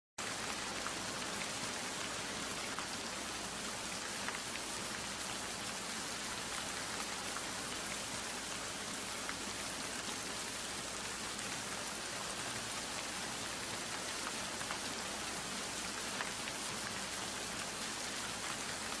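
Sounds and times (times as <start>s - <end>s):
rain: 0.2s - 18.9s.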